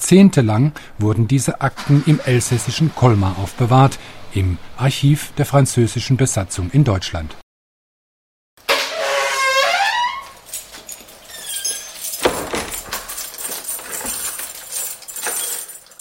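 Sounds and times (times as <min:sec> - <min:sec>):
speech: 0:00.1 - 0:07.4
door hinge squealing: 0:01.7 - 0:03.6, 0:08.7 - 0:10.6, 0:11.2 - 0:13.0
keys jingling: 0:10.0 - 0:16.0
latch clunk: 0:10.1 - 0:15.5.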